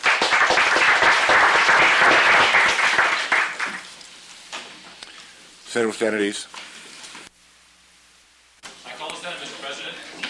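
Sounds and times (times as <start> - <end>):
applause from the Senate floor welcoming guests in the gallery: 0.0 - 3.9
speech: 5.8 - 6.7.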